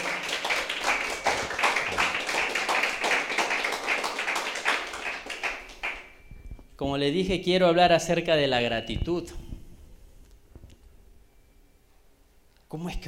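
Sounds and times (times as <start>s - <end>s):
audience applause: 0.0s - 6.2s
speech: 6.8s - 9.4s, 12.8s - 13.0s.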